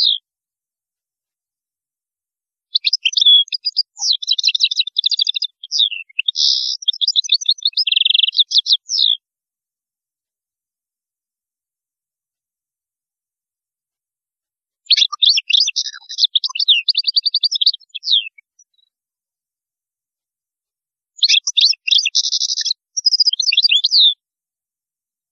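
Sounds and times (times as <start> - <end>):
European goldfinch song: 0.0 - 0.2, 2.7 - 9.2, 14.8 - 19.0, 21.1 - 24.2.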